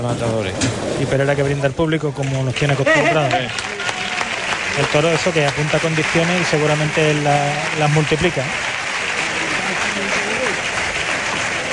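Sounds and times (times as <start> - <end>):
speech: 0.0 - 3.8, 4.8 - 8.7
bullring crowd ovation: 2.6 - 11.7.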